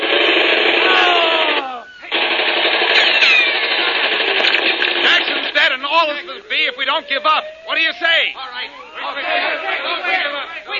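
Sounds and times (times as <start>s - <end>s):
gunfire from a gun in a radio drama: 0.0s - 6.2s
speech: 7.0s - 10.5s.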